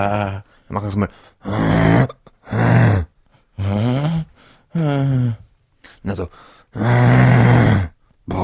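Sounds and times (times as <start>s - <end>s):
speech: 0.0s - 2.9s, 6.0s - 8.4s
person imitating a lion's roar: 1.4s - 5.2s, 6.8s - 8.4s.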